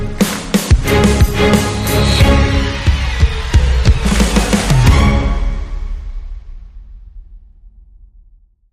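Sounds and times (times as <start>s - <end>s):
hybrid sting: 0.2s - 7.6s.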